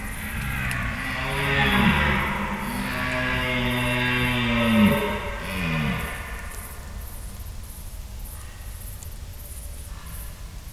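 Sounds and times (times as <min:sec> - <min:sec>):
red deer stag bellowing and roaring: 0:00.0 - 0:06.6
low steady background noise: 0:00.0 - 0:10.7.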